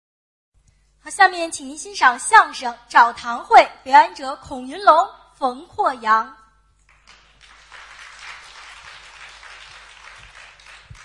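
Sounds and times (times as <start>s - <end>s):
speech: 1.0s - 6.4s
audience applause: 6.9s - 11.0s.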